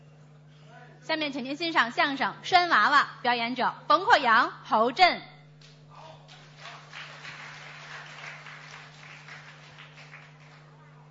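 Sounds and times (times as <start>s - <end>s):
speech: 1.1s - 5.3s
audience applause: 6.2s - 11.1s.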